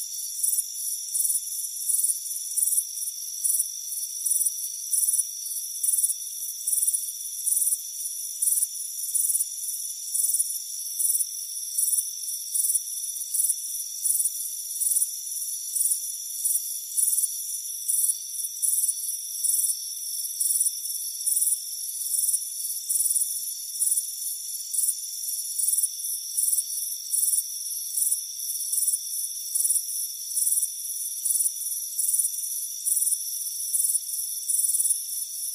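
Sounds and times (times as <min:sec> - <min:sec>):
crickets chirping in high pulsed bursts: 0:00.0 - 0:35.5.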